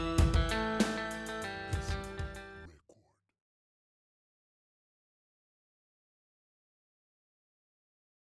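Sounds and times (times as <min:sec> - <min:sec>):
rock music: 0:00.0 - 0:02.7.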